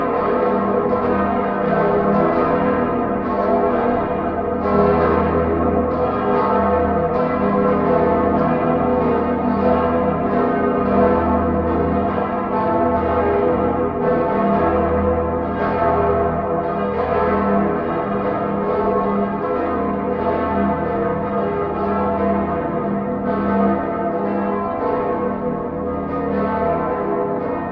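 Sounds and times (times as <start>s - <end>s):
full peal of church bells ringing: 0.0s - 27.7s.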